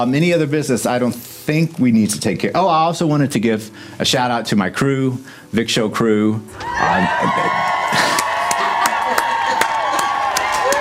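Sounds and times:
speech: 0.0 - 8.1
crowd cheering and clapping: 6.6 - 10.7
laughter: 6.6 - 10.7.

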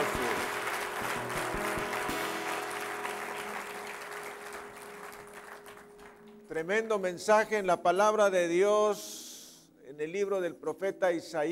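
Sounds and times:
audience applause: 0.0 - 6.4
speech: 6.6 - 9.2, 10.0 - 11.5.

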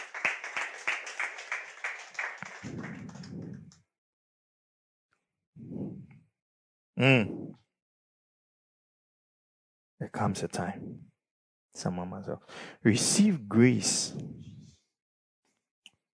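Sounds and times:
audience applauding: 0.0 - 3.8
speech: 7.0 - 7.4, 10.2 - 11.1, 11.7 - 14.5.

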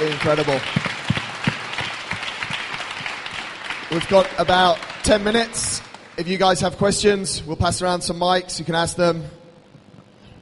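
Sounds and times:
speech: 0.0 - 0.9, 3.9 - 9.4
audience applause: 0.0 - 6.8.

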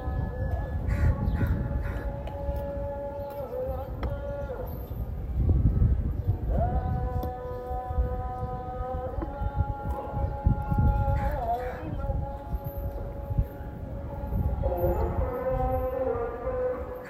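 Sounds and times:
rumbling street noise in Zanzibar: 0.0 - 17.0
voices on a Zanzibar street: 0.0 - 17.0
crow-like calls: 0.9 - 2.2, 11.2 - 12.0.

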